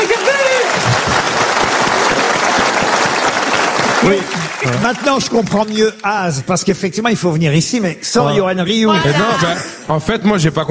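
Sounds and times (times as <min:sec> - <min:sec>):
audience applause: 0:00.0 - 0:06.3
speech: 0:04.0 - 0:10.6.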